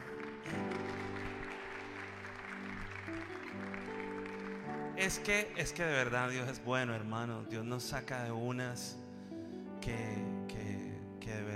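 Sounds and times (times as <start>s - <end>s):
crowd clapping: 0.0s - 6.5s
sustained keyboard chords: 0.0s - 11.5s
speech: 5.0s - 9.0s, 9.8s - 10.3s.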